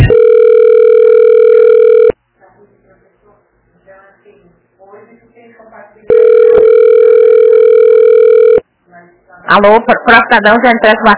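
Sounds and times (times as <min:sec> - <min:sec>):
telephone dial tone on a call that fails to connect: 0:00.1 - 0:02.2, 0:06.1 - 0:08.6
speech: 0:09.6 - 0:11.1.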